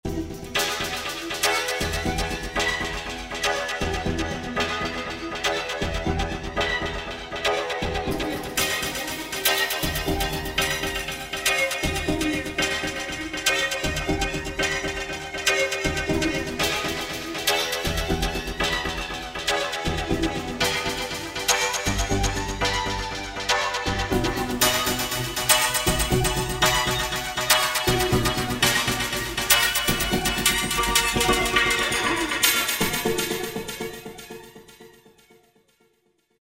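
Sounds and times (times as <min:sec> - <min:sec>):
Roland V-Synth synthesizer: 0:00.0 - 0:36.0.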